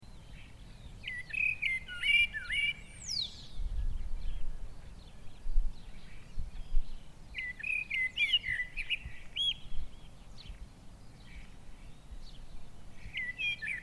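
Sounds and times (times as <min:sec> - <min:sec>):
Eurasian blackbird song: 0:00.0 - 0:13.8.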